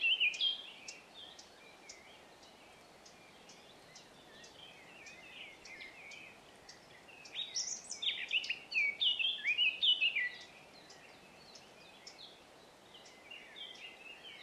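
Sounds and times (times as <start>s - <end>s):
Eurasian blackcap (Sylvia atricapilla) song of rapid varied warbling: 0.0s - 14.4s.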